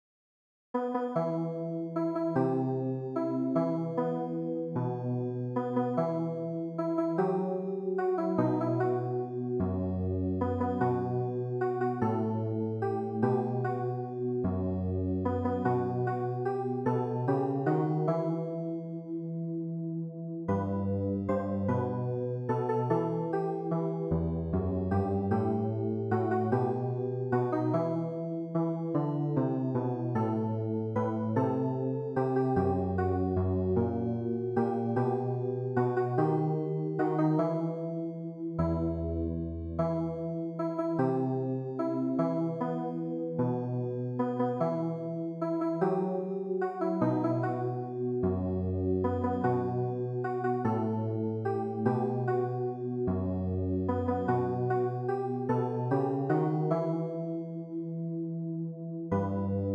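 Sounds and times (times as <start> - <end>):
keyboard: 0.8 - 59.7.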